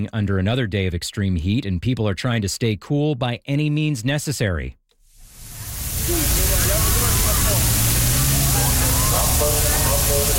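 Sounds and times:
speech: 0.0 - 4.8, 6.1 - 6.7
water cannon spraying water on crowd: 5.1 - 10.3.

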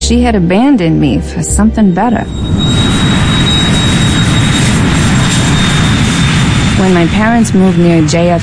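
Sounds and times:
speech: 0.1 - 3.1, 6.8 - 8.4
jet airplane flying overhead: 0.8 - 8.4.

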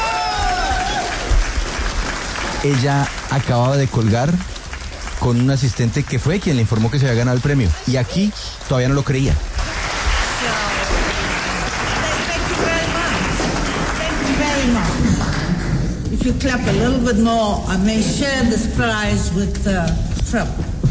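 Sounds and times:
crowd clapping: 0.0 - 16.2
speech: 2.6 - 4.6, 5.2 - 9.5, 16.4 - 20.7.

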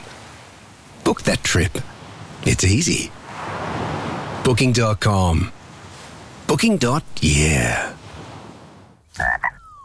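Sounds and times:
speech: 1.1 - 3.2, 4.5 - 5.5, 6.5 - 8.0
frog croaking: 9.1 - 9.8.

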